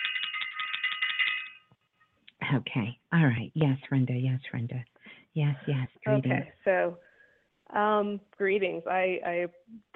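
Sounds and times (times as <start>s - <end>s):
bell being rung: 0.0s - 1.7s
speech: 2.5s - 7.1s, 7.7s - 9.9s.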